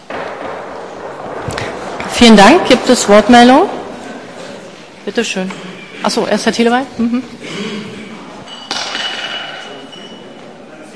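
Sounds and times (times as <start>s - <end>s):
speech: 2.2s - 3.8s, 5.1s - 7.6s
glass bottle clinking during a council meeting: 8.4s - 10.3s.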